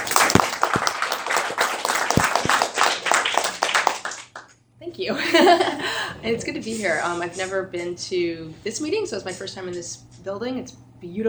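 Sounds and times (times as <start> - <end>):
audience applause welcoming a speaker at a convention meeting: 0.0 - 4.5
speech: 5.0 - 11.2
laughter: 5.1 - 7.5.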